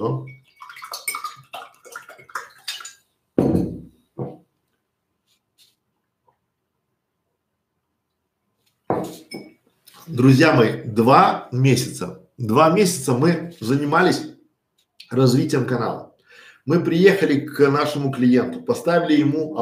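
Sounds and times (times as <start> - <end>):
speech: 0.0 - 0.4, 10.1 - 14.3, 15.1 - 16.1, 16.7 - 19.5
glass clinking while drinking water: 0.1 - 1.5, 8.9 - 9.6.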